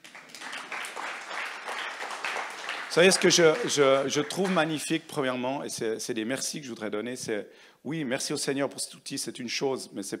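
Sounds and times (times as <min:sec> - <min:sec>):
audience applause: 0:00.0 - 0:04.9
speech: 0:02.9 - 0:10.1.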